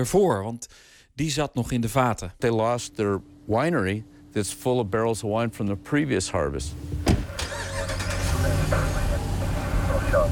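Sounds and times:
speech: 0.0 - 7.0
car engine and road hum: 5.7 - 10.3.

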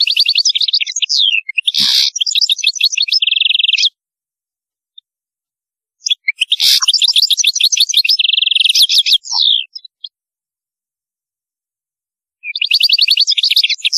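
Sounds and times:
European goldfinch song: 0.0 - 4.0, 6.0 - 10.2, 12.4 - 13.9.

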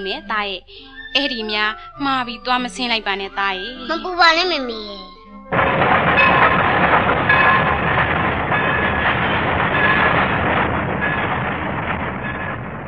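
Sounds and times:
speech: 0.0 - 6.4
train departing: 5.5 - 12.8
rails clickety-clack: 5.7 - 12.8.

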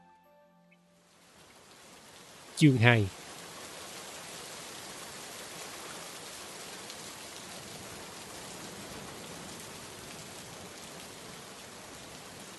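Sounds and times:
first downpour of the season over a village and its fields: 1.1 - 12.5
speech: 2.6 - 3.2.

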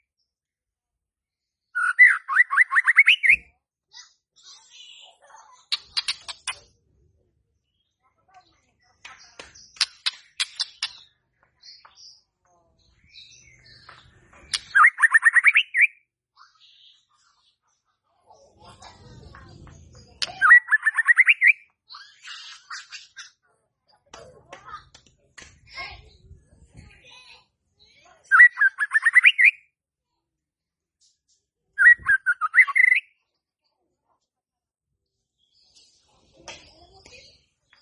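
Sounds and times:
white-rumped shama song: 1.7 - 3.5, 14.5 - 16.1, 20.2 - 23.0, 28.3 - 29.7, 31.8 - 33.2.

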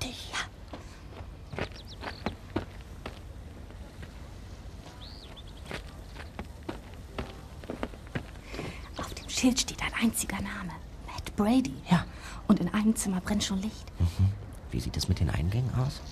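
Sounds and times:
footsteps walking past a house: 0.6 - 9.1
speech: 9.4 - 10.8, 11.4 - 16.0.

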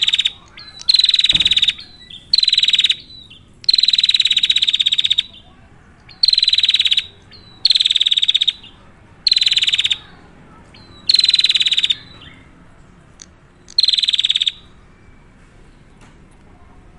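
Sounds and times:
prinia buzzy high-pitched rattling calls: 0.0 - 5.4, 6.1 - 12.4, 13.7 - 14.6.

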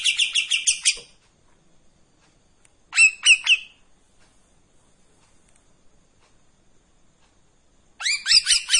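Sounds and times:
Streak-eared bulbul buzzy chattering song: 0.0 - 1.2, 2.9 - 3.9, 7.9 - 8.7.

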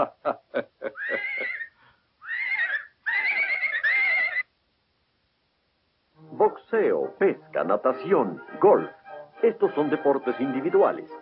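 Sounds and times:
speech: 0.0 - 0.7, 6.7 - 11.2
horse whinnying: 1.0 - 4.5.

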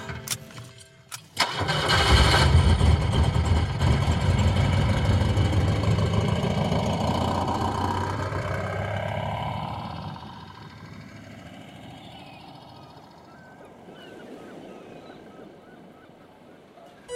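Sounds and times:
car engine starting and idling: 1.1 - 13.3.

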